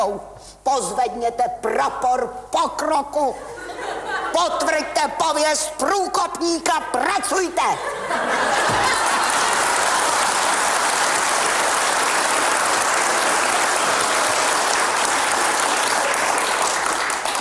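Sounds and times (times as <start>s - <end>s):
speech: 0.0s - 3.6s, 4.3s - 8.8s
laughter: 3.4s - 5.1s, 7.7s - 10.6s
crowd applause: 8.3s - 17.3s.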